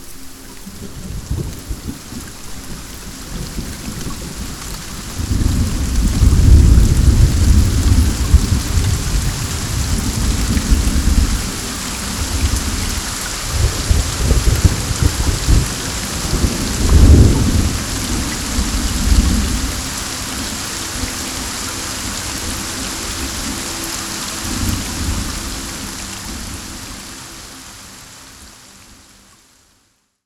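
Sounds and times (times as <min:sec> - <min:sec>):
wind: 0:00.0 - 0:30.0
rain: 0:00.0 - 0:30.2
thunder: 0:05.1 - 0:19.9.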